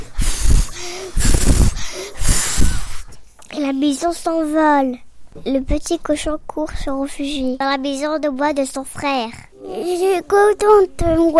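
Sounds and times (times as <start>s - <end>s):
voice imitating a wolf blowing hard: 0.0s - 3.1s
speech: 3.6s - 11.3s.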